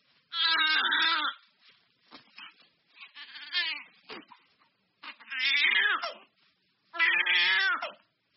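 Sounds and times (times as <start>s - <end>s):
baby crying in a nursery: 0.3s - 1.4s, 3.0s - 4.3s, 5.0s - 6.3s, 7.0s - 8.0s.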